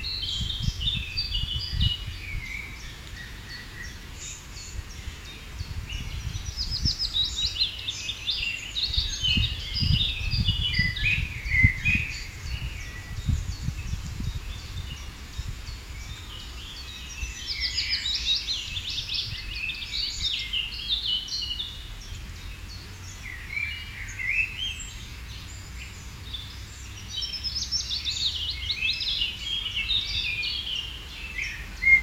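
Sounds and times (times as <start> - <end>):
birds singing: 0.0 - 32.0.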